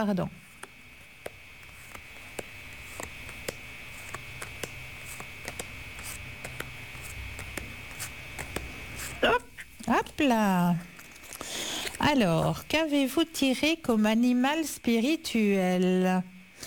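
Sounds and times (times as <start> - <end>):
speech: 0.0 - 0.5, 10.0 - 10.9, 12.0 - 16.6
faint steady whine: 0.0 - 16.6
cards laid down during a spirit-animal card reading: 0.5 - 9.2.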